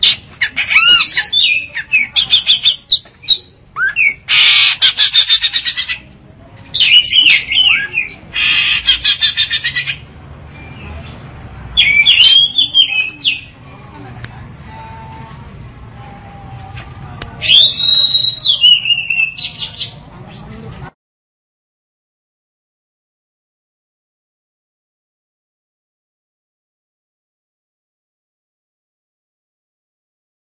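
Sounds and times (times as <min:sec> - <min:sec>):
Long-tailed Shrike song: 0:00.0 - 0:13.6, 0:17.4 - 0:20.9.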